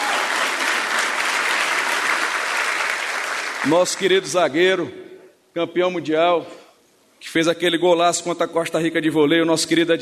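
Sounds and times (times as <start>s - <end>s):
audience applause: 0.0s - 4.1s
speech: 3.6s - 5.0s, 5.6s - 6.6s, 7.2s - 10.0s.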